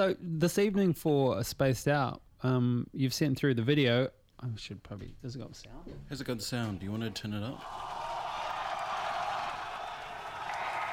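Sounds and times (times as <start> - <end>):
speech: 0.0 - 8.0
mission control crowd clapping: 7.6 - 10.9.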